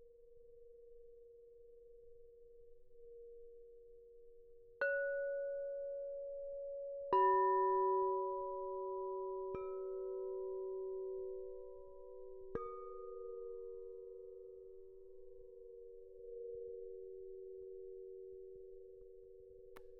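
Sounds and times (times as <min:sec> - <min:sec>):
crystal singing bowls: 0:04.8 - 0:19.6.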